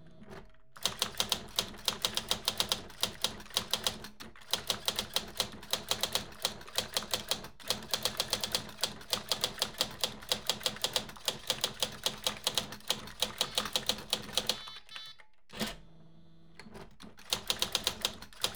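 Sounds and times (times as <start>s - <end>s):
typewriter typing: 0.8s - 15.0s, 17.0s - 18.5s
computers whirring: 13.2s - 15.2s.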